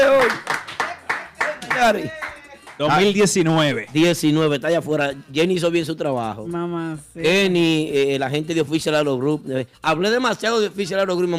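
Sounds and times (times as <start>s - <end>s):
rhythmic clapping: 0.0s - 4.6s
speech: 0.2s - 0.5s, 1.8s - 2.2s, 2.8s - 11.3s.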